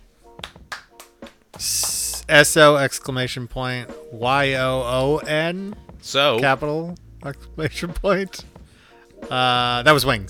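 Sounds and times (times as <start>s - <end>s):
clapping: 0.4s - 2.3s
speech: 1.6s - 8.5s, 9.2s - 10.2s.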